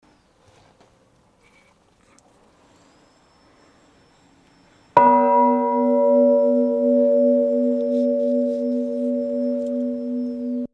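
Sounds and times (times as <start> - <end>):
bell ringing: 2.9 - 10.7.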